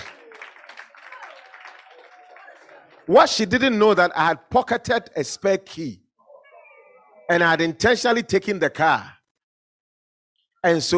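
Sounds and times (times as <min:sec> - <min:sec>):
congregation clapping during a church sermon: 0:00.0 - 0:03.8
speech: 0:03.1 - 0:06.0, 0:07.3 - 0:09.2, 0:10.6 - 0:10.9.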